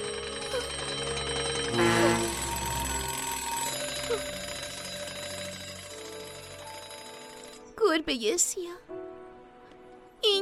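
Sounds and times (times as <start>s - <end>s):
alarm clocks ringing: 0.0s - 7.8s
speech: 8.0s - 9.0s.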